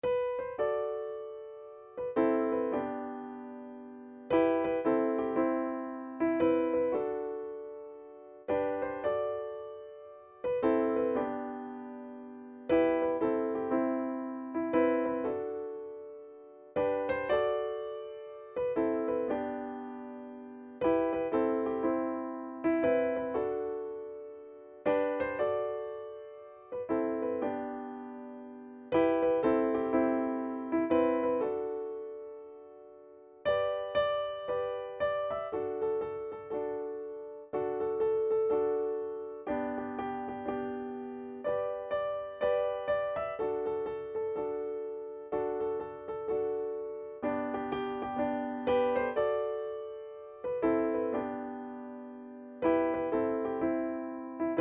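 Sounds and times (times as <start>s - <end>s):
easy midi music: 0.1s - 54.5s.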